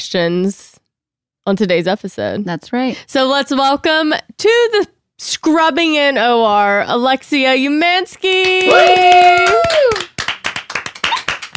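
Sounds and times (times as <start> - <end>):
speech: 0.0 - 0.8, 1.5 - 10.0
quick steady hand clapping: 8.4 - 11.5
loud sustained tonal whoop: 8.7 - 10.1.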